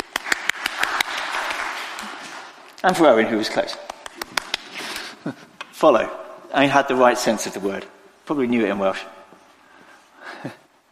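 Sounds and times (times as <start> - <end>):
round of applause in a quiz-style class: 0.0 - 2.7, 3.5 - 5.1
speech: 2.8 - 3.9, 5.2 - 9.2.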